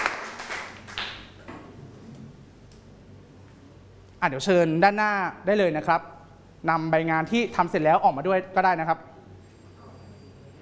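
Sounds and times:
group of students clapping: 0:00.0 - 0:01.4
speech: 0:04.2 - 0:09.1.

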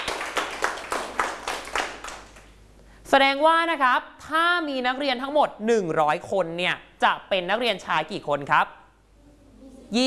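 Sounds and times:
students clapping: 0:00.0 - 0:02.6
speech: 0:03.1 - 0:08.8.

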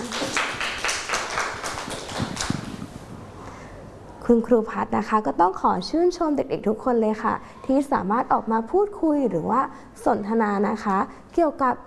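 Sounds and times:
children clapping hands: 0:00.0 - 0:02.9
speech: 0:04.3 - 0:11.8.

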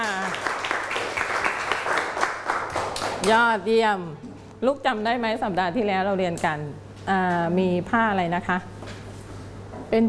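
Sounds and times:
applause: 0:00.0 - 0:03.4
speech: 0:03.2 - 0:08.7.

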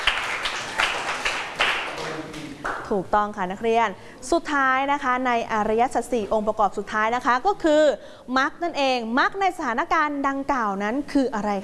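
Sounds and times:
hand claps: 0:00.0 - 0:02.9
speech: 0:02.9 - 0:11.6.

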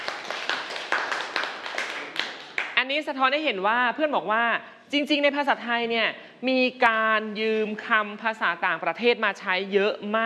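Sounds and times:
classroom clapping for a student: 0:00.0 - 0:02.8
speech: 0:02.9 - 0:10.2.

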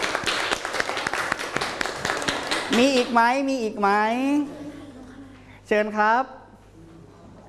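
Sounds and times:
students in a classroom clapping for a classmate: 0:00.0 - 0:03.2
speech: 0:02.7 - 0:04.6, 0:05.7 - 0:06.4.

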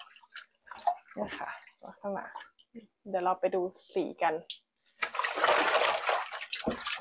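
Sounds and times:
running water splashing as a cloth is rinsed: 0:00.0 - 0:02.6, 0:05.0 - 0:07.0
speech: 0:01.2 - 0:04.6.

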